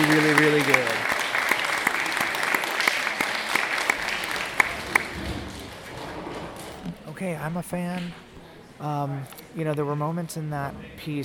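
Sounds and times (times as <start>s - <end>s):
clapping: 0.0s - 5.8s
speech: 0.1s - 1.1s, 7.3s - 11.2s.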